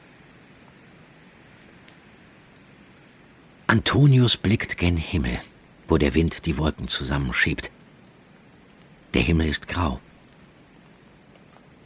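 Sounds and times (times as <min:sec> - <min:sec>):
light drizzling rain: 0:00.0 - 0:11.8
speech: 0:03.8 - 0:07.8, 0:09.1 - 0:10.1.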